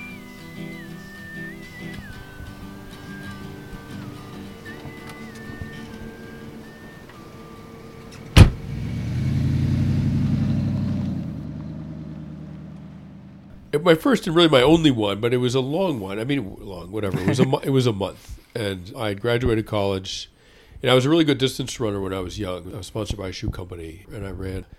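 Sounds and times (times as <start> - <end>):
person whistling a wavering tune: 0.0 - 8.2
car engine humming: 0.0 - 13.8
car door slam: 8.1 - 8.8
speech: 13.8 - 24.7
laughter: 17.0 - 17.8.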